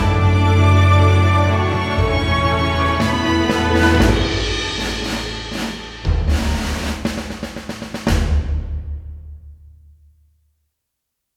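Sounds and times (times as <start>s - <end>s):
patriotic anthem: 0.0s - 7.3s.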